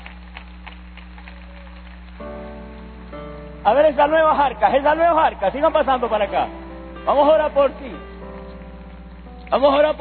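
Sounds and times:
audience applause: 0.0 - 2.3
speech: 3.6 - 8.1, 9.5 - 9.9.

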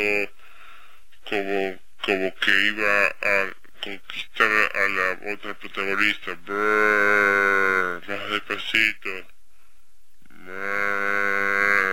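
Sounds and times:
speech: 0.0 - 0.4, 1.3 - 9.4
cow mooing: 10.5 - 11.9.

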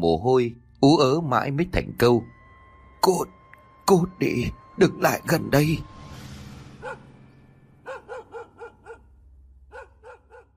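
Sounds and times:
speech: 0.0 - 2.4, 3.0 - 5.9
dog barking: 6.8 - 7.2, 7.8 - 9.1, 9.7 - 10.5.

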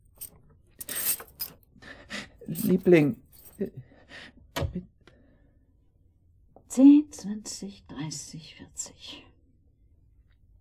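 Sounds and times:
bunch of keys jingling as it is handed over: 0.0 - 1.6, 2.4 - 3.7
speech: 2.5 - 3.9, 6.8 - 9.2.

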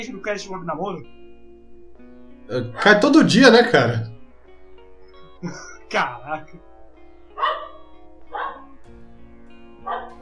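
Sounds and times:
speech: 0.0 - 1.2, 2.5 - 4.2, 5.4 - 6.7
dog barking: 7.3 - 8.8, 9.8 - 10.2.

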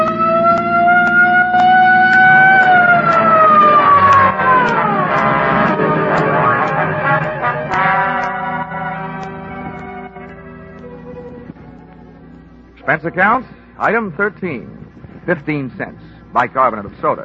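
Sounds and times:
police patrol car siren wailing during a chase: 0.0 - 13.4
rough engine-like undertone: 0.0 - 16.0
speech: 13.0 - 17.2.

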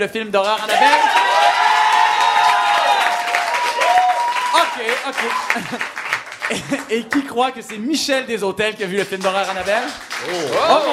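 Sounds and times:
speech: 0.0 - 1.6, 4.8 - 10.9
audience cheering and applauding to vote: 0.5 - 7.8, 9.1 - 10.9
laughter: 5.2 - 7.4, 10.2 - 10.9.

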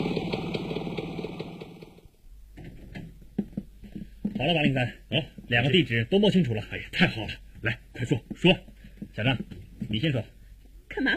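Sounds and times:
motorcycle engine downstairs arriving: 0.0 - 2.2
sharp clicks and knocks: 2.6 - 5.6, 7.6 - 10.7
speech: 4.4 - 10.4, 11.0 - 11.1.

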